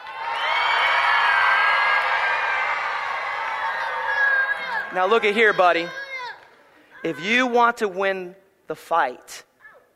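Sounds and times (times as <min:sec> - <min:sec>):
audience cheering loudly: 0:00.0 - 0:06.1
speech: 0:04.9 - 0:06.0, 0:07.0 - 0:09.5.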